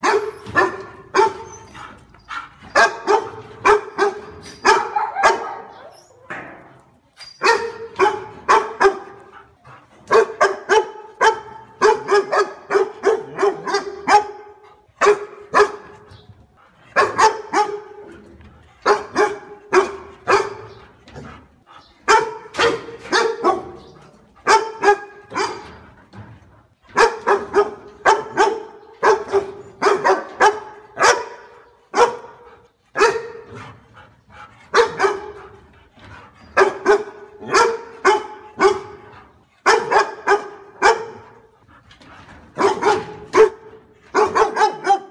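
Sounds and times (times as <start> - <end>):
dog barking: 0.0 - 1.5, 2.8 - 5.8, 7.4 - 9.2, 10.1 - 15.9, 17.0 - 18.0, 18.8 - 20.8, 22.1 - 23.8, 24.4 - 25.7, 27.0 - 33.5, 34.7 - 35.4, 36.6 - 41.4, 42.6 - 45.0.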